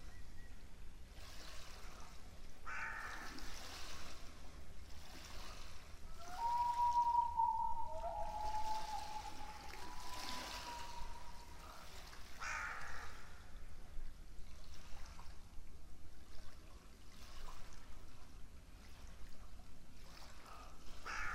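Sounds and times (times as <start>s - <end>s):
bird rasping calls: 6.3s - 11.4s, 12.4s - 13.0s.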